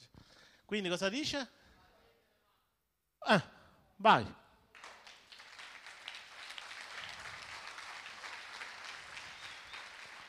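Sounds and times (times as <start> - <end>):
speech: 0.7 - 1.6, 3.2 - 4.4
audience clapping hands in worship: 4.7 - 10.2.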